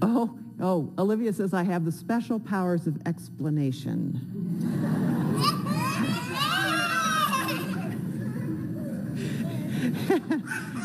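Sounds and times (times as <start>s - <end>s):
speech: 0.0s - 5.6s, 9.8s - 10.8s
laughter: 4.4s - 10.8s
child screaming: 5.4s - 7.8s
hubbub of children's voices chattering: 5.4s - 9.7s.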